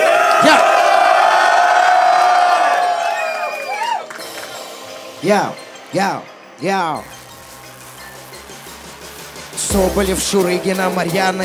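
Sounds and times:
crowd cheering and shouting: 0:00.0 - 0:06.2
speech: 0:05.2 - 0:07.2, 0:09.7 - 0:11.4.

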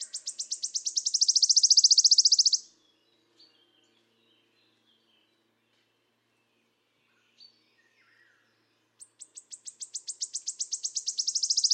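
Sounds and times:
Phylloscopus sibilatrix wood warbler buzzy shivering trill: 0:00.2 - 0:02.6, 0:09.6 - 0:11.7.

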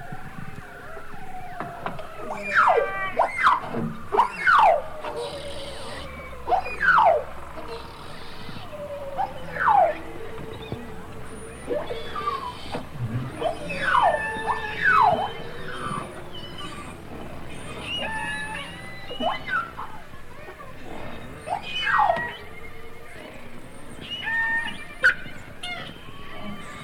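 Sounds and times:
beluga whale whistles and trills: 0:00.0 - 0:26.8.

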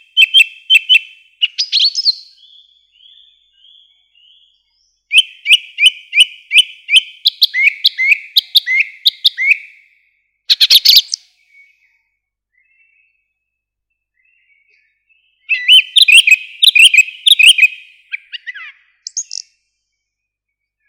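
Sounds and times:
song thrush singing: 0:00.0 - 0:20.8.

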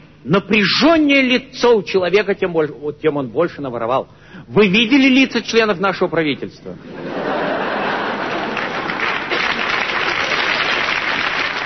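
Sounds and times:
speech: 0:00.2 - 0:07.3
laughter: 0:06.8 - 0:09.8
audience applause: 0:07.6 - 0:11.6.

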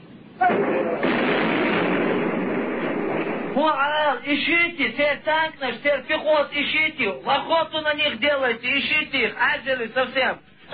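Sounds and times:
heavy gunfire during a firefight: 0:00.4 - 0:05.2
speech: 0:03.6 - 0:10.7.

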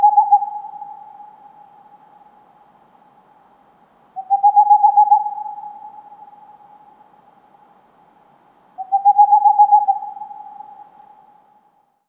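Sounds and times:
Tengmalm's owl song of rapid pulsed low hoots: 0:00.0 - 0:02.4, 0:04.2 - 0:07.0, 0:08.8 - 0:11.5.

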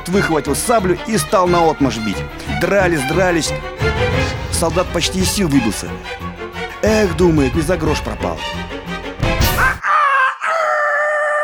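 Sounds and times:
speech: 0:00.1 - 0:08.6
rooster crowing: 0:09.8 - 0:11.4.

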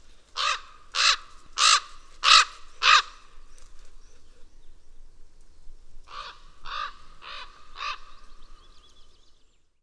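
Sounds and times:
raven giving harsh caws: 0:00.4 - 0:03.4, 0:06.1 - 0:08.4.

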